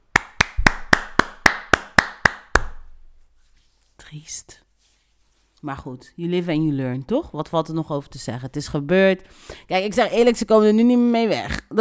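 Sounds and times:
slow sparse claps: 0:00.0 - 0:02.9
speech: 0:04.1 - 0:04.6, 0:05.6 - 0:11.7.

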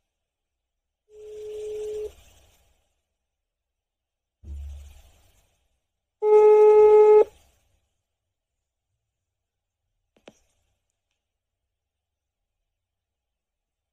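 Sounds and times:
low thump: 0:04.4 - 0:05.0
telephone dialing tones: 0:06.2 - 0:07.3.

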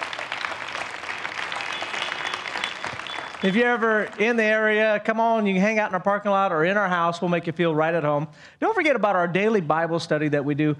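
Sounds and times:
audience applause: 0:00.0 - 0:04.9
speech: 0:03.4 - 0:10.7.

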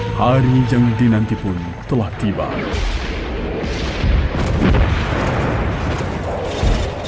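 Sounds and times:
speech: 0:00.2 - 0:03.0
warship artillery shell firing and exploding: 0:02.5 - 0:07.0.

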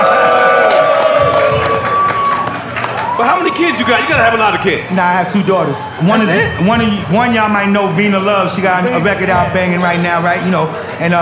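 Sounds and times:
live audience cheering and clapping: 0:00.0 - 0:06.5
speech: 0:03.5 - 0:11.2.

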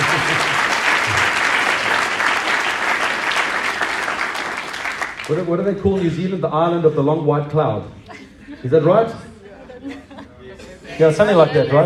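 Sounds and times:
laughter: 0:00.0 - 0:03.5, 0:05.8 - 0:11.8
audience applause: 0:00.0 - 0:05.6
speech: 0:05.3 - 0:10.0, 0:11.0 - 0:11.8.

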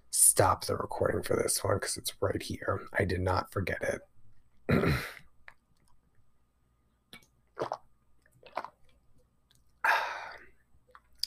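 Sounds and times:
speech: 0:00.4 - 0:04.1, 0:04.7 - 0:05.2
drinking water from a bottle: 0:07.6 - 0:07.8, 0:08.4 - 0:08.9.

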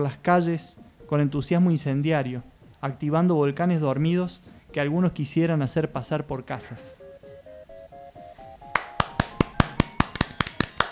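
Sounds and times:
speech: 0:00.0 - 0:07.0
hands clapping in applause: 0:08.7 - 0:10.9.

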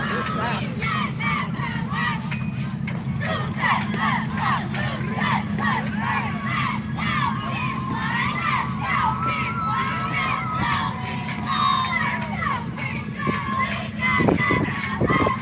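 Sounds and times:
children's high-pitched yells: 0:00.0 - 0:02.3, 0:03.2 - 0:15.4
parade crowd cheering and shouting: 0:00.0 - 0:02.4, 0:03.2 - 0:15.4.

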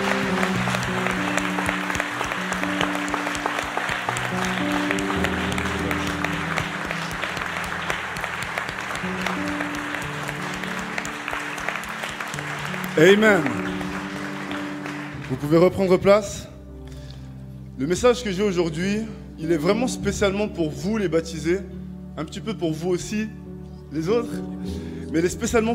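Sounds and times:
audience applause: 0:00.0 - 0:15.6
sustained low musical tones: 0:00.0 - 0:25.7
speech: 0:13.0 - 0:13.6, 0:15.4 - 0:16.5, 0:17.8 - 0:25.7.

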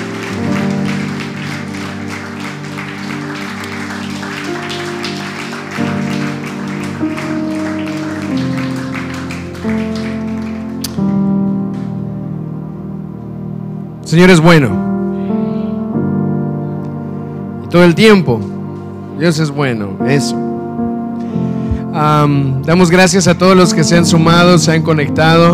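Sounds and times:
audience applause: 0:00.0 - 0:11.9
sustained organ or keyboard chords: 0:00.0 - 0:25.5
speech: 0:14.1 - 0:14.9, 0:17.7 - 0:18.5, 0:19.2 - 0:20.4, 0:22.0 - 0:25.5.

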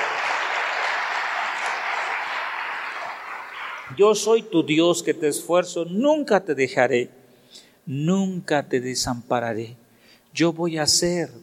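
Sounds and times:
audience applauding: 0:00.0 - 0:04.0
speech: 0:03.9 - 0:11.4.

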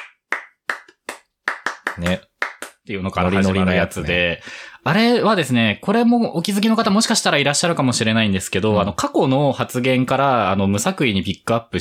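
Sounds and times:
hand clapping: 0:00.0 - 0:02.9
speech: 0:02.0 - 0:11.8.

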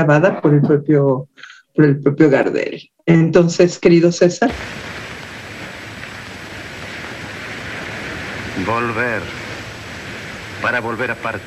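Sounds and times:
speech: 0:00.0 - 0:05.0, 0:08.6 - 0:09.4, 0:10.6 - 0:11.4
sea waves: 0:04.5 - 0:11.4.

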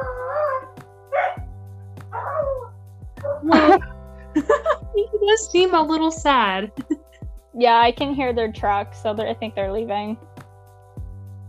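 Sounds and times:
dog barking: 0:00.5 - 0:01.5
speech: 0:03.4 - 0:04.5, 0:05.2 - 0:06.9, 0:07.6 - 0:10.3
laughter: 0:03.5 - 0:05.2.

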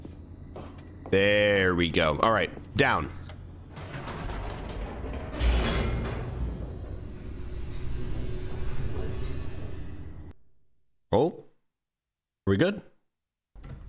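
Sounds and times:
elevator moving in a video game: 0:00.3 - 0:10.6
speech: 0:01.1 - 0:03.2, 0:12.5 - 0:12.9.

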